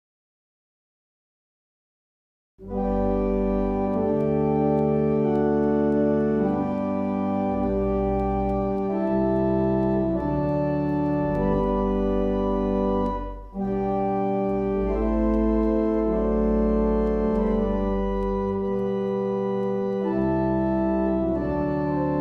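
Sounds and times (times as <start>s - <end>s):
barrel organs playing a hymn: 2.6s - 22.1s.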